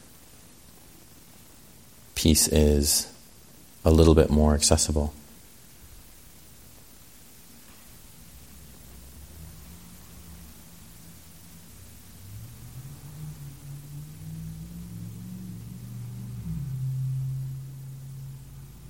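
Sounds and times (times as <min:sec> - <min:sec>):
hiss: 0:00.0 - 0:18.8
speech: 0:02.2 - 0:03.2, 0:03.8 - 0:05.2
car driving down the street: 0:11.7 - 0:18.8.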